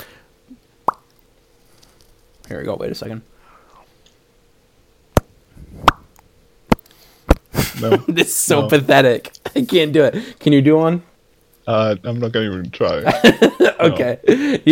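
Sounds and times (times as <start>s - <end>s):
mouth pops: 0.8s - 1.1s
speech: 2.5s - 3.4s, 7.8s - 11.1s, 11.7s - 14.6s
laughter: 7.6s - 8.6s, 13.0s - 14.6s.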